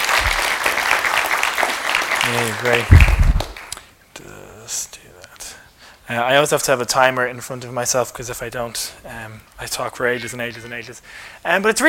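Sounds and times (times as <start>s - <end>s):
audience clapping: 0.0s - 3.9s
speech: 2.3s - 3.2s, 6.1s - 11.8s.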